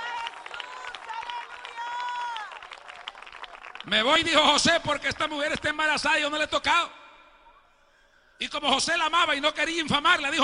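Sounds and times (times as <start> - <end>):
audience applauding: 0.0 - 5.3
speech: 3.8 - 7.0, 8.4 - 10.4.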